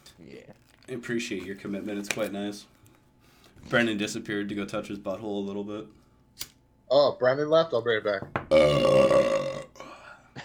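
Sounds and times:
speech: 0.2 - 2.8, 3.6 - 9.3
loud burp: 8.5 - 9.9.

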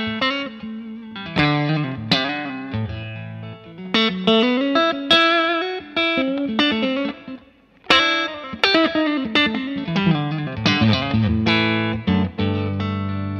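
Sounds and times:
distorted electric guitar with chorus and reverb played on the neck pickup: 0.0 - 13.3.

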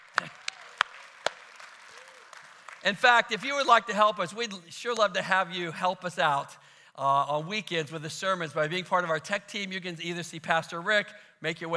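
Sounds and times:
sparse audience hand claps: 0.0 - 3.6
speech: 2.8 - 11.7.

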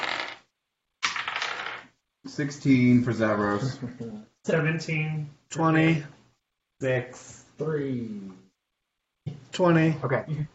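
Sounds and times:
dice rattling and clattering across a hard surface: 0.0 - 1.9
speech: 2.2 - 6.2, 6.8 - 8.4, 9.6 - 10.5.

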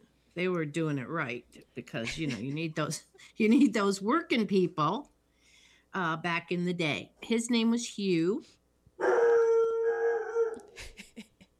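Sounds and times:
speech: 0.4 - 5.1, 5.9 - 8.6
dog howling: 9.0 - 10.8.

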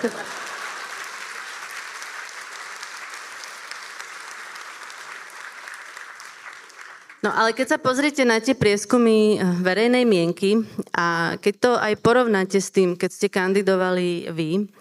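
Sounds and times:
speech: 0.0 - 0.4, 7.2 - 14.8
crowd audience applause: 0.0 - 7.2.

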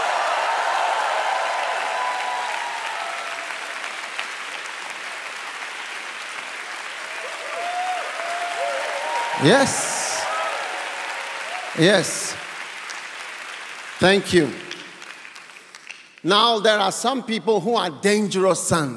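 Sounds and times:
audience cheering: 0.0 - 4.2, 7.0 - 12.6
audience applause: 0.0 - 16.3
speech: 9.4 - 9.9, 11.8 - 12.4, 14.0 - 14.7, 16.2 - 18.9.

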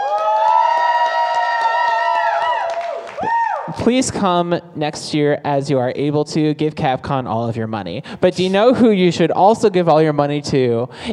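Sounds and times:
audience cheering: 0.0 - 3.8
speech: 3.2 - 11.1.

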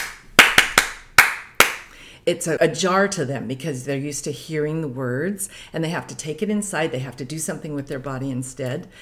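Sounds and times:
children clapping a song rhythm: 0.0 - 1.9
speech: 2.3 - 9.0.

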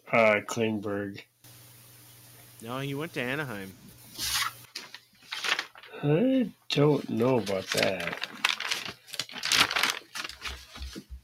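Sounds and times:
speech: 0.1 - 1.3, 2.6 - 4.3, 6.0 - 8.3
paper pages rustling and crinkling: 4.1 - 5.9, 6.8 - 11.2.

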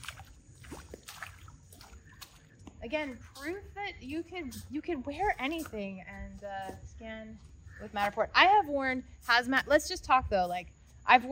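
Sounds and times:
footsteps through a tiny puddle: 0.0 - 6.8
speech: 2.8 - 11.3.

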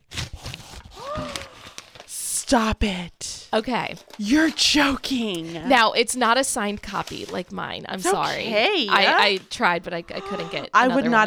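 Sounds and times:
stiff brown craft paper wrapping crinkling: 0.0 - 2.4, 6.3 - 9.8
speech: 2.5 - 11.2.

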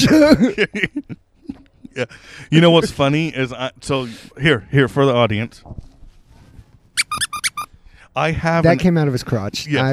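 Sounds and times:
speech: 0.0 - 5.9, 8.2 - 9.9
squeaker toy squeaking: 7.0 - 7.7.

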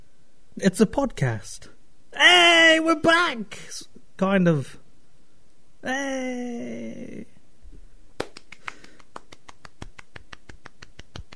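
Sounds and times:
speech: 0.6 - 4.8, 5.8 - 7.3
hand clapping: 8.2 - 11.3.

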